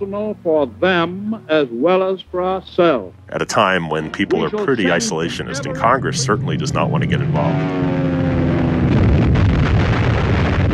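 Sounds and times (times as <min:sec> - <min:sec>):
speech: 0:00.0 - 0:07.9
explosions from archival newsreel footage of the Pearl Harbor raid: 0:05.7 - 0:10.7.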